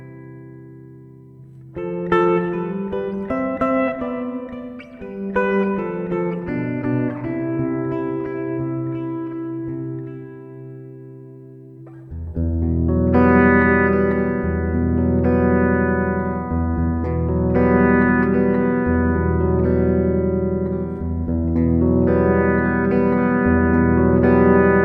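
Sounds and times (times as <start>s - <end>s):
guitar: 0.0s - 24.8s.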